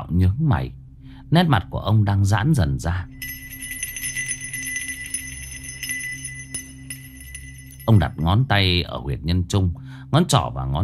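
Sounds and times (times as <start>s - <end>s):
speech: 0.1s - 3.3s, 7.9s - 10.8s
small bell jingling: 3.2s - 8.4s.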